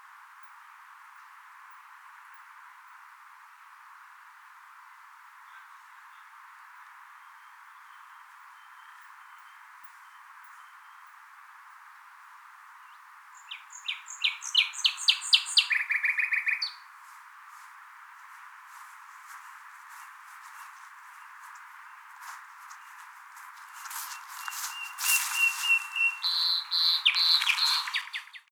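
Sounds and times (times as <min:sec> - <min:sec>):
common nightingale singing: 0:05.4 - 0:11.3, 0:12.8 - 0:28.5.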